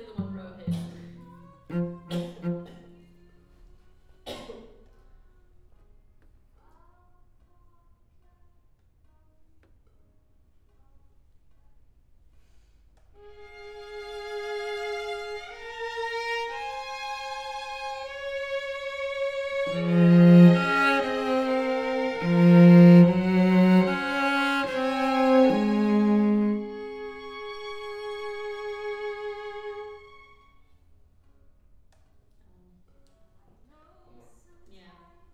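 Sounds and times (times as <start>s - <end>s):
cello: 0.0s - 3.8s, 13.2s - 30.9s.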